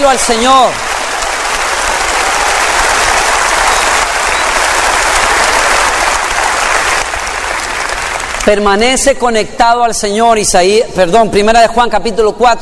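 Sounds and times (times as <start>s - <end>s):
speech: 0.0s - 0.9s, 8.4s - 12.6s
audience applause: 0.0s - 8.6s.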